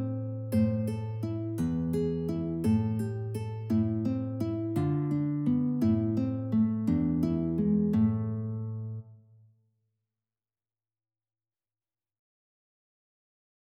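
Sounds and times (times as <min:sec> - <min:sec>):
guitar waltz: 0:00.0 - 0:09.2.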